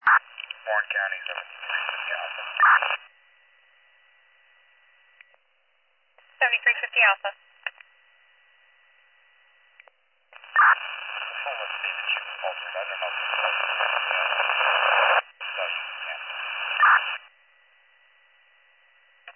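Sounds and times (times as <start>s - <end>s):
radio static: 0.0s - 3.1s, 6.2s - 7.8s, 10.4s - 17.3s
speech: 0.7s - 3.1s, 6.4s - 7.5s.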